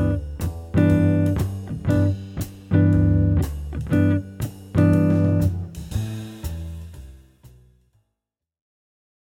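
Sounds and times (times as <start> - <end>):
easy jazz guitar chords backing track: 0.0 - 7.4.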